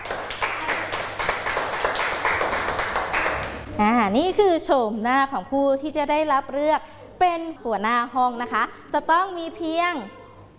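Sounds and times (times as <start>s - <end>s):
applause, hands clapping: 0.0s - 3.7s
speech: 3.8s - 10.2s.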